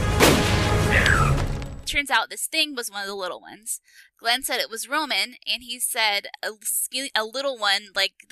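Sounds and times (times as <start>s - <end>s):
gunshots: 0.1s - 1.2s
speech: 1.9s - 8.3s.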